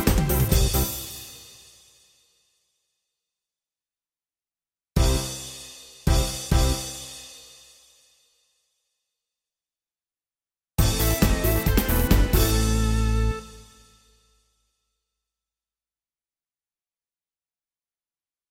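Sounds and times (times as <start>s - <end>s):
Hungarian disco music: 0.0s - 1.4s, 5.0s - 5.4s, 6.1s - 6.9s, 10.8s - 13.6s.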